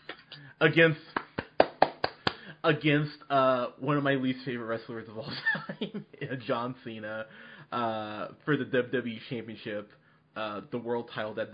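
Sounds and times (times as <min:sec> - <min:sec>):
hands clapping: 0:00.0 - 0:00.4, 0:01.1 - 0:02.4
speech: 0:00.6 - 0:01.1, 0:02.6 - 0:11.5.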